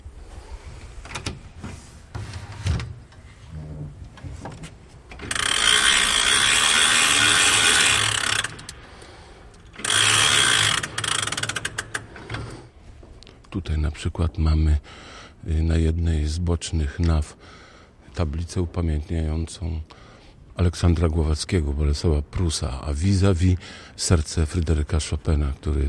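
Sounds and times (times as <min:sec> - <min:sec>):
winding a weight-driven grandfather clock: 0:05.1 - 0:12.6
speech: 0:14.1 - 0:17.6, 0:18.2 - 0:20.0, 0:20.6 - 0:25.8.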